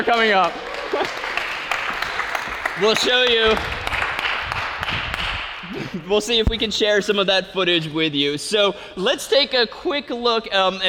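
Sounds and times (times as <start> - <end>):
speech: 0.0 - 1.2, 2.8 - 3.8, 5.7 - 10.8
audience applause: 0.0 - 5.8.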